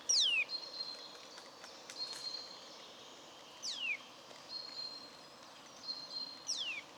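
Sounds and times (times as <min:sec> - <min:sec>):
Eurasian nuthatch Sitta europaea giving sharp high ticking notes: 0:00.1 - 0:00.5, 0:03.6 - 0:04.0, 0:06.5 - 0:06.9.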